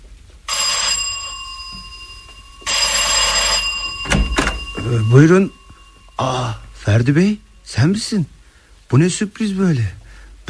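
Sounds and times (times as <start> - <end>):
doorbell ringing with an electric buzz: 0.5 - 7.6
speech: 4.9 - 5.6, 6.2 - 10.4.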